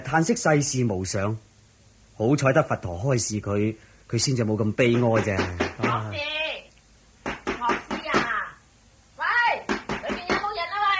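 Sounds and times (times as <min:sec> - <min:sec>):
speech: 0:00.1 - 0:01.5, 0:02.2 - 0:06.3
sharp rapid knocking on a wooden door: 0:04.8 - 0:06.2, 0:07.2 - 0:08.4, 0:09.7 - 0:10.6.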